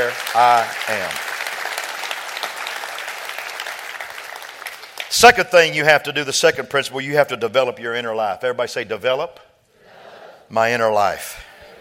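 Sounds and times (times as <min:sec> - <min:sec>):
speech: 0:00.0 - 0:01.3, 0:05.1 - 0:09.5, 0:10.5 - 0:11.5
audience applause: 0:00.0 - 0:05.3.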